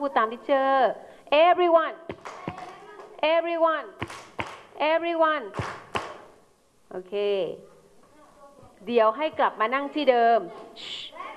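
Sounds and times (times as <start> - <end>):
speech: 0.0 - 2.1, 3.2 - 4.2, 4.8 - 5.8, 6.9 - 7.7, 8.8 - 11.0
class of children clapping hands: 2.1 - 3.2, 4.0 - 4.7, 5.6 - 6.3.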